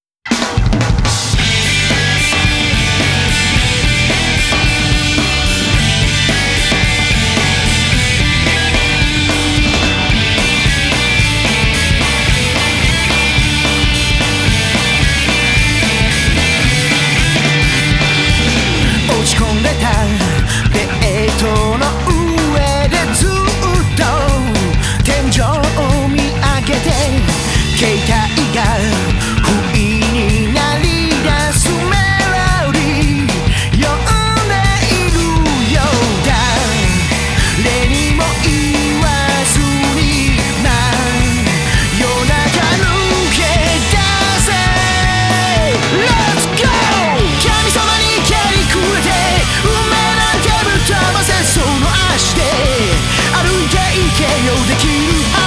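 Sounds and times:
rock and roll music: 0.0 - 55.4.

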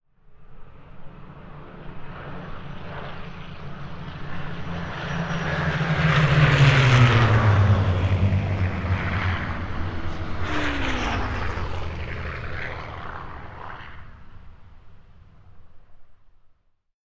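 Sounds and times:
crop duster plane on Molokai: 4.2 - 16.0.

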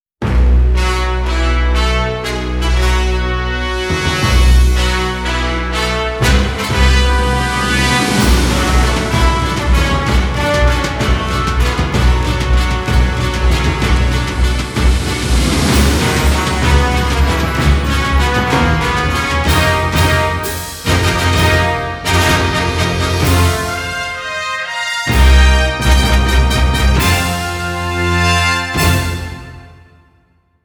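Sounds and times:
fanfare: 0.5 - 30.3.

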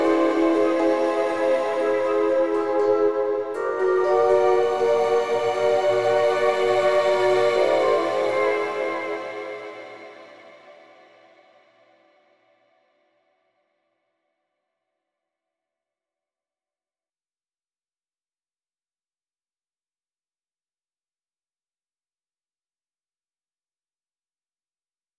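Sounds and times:
synth pads: 0.0 - 11.2.

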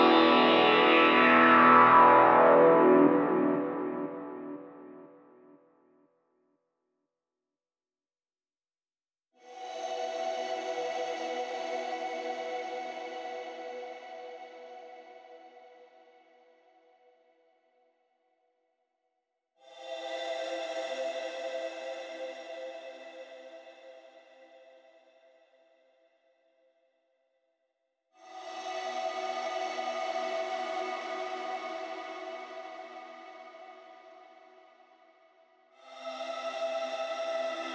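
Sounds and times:
synth pads: 0.0 - 5.6.

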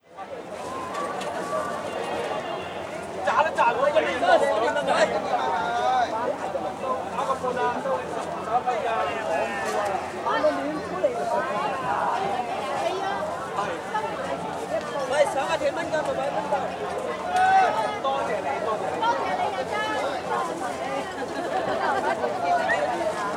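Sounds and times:
Hong Kong city ambience: 0.1 - 23.3.

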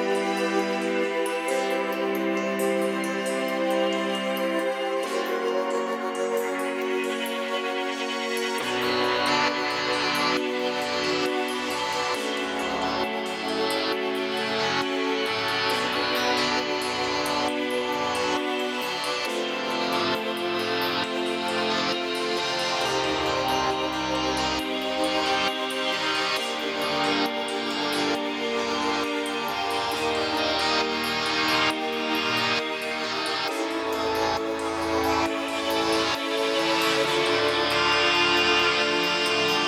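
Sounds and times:
synth pads at 135 BPM: 0.0 - 39.6.

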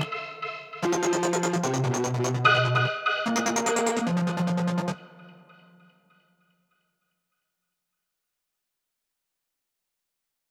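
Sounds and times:
synthesizer sounds: 0.0 - 5.8.

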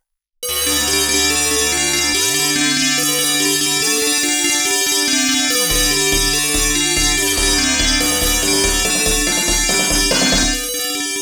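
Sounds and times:
mission accomplished victory jingle: 0.4 - 11.1.

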